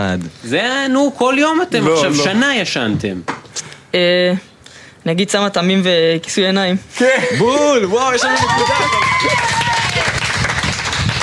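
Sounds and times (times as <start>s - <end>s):
speech: 0.0s - 9.4s
crowd applause: 8.0s - 11.2s.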